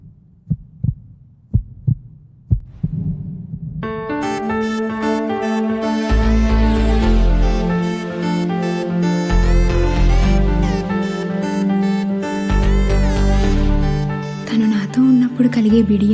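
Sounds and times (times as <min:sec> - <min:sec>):
heartbeat thumps: 0:00.0 - 0:03.9
music with sustained tones: 0:04.0 - 0:16.1.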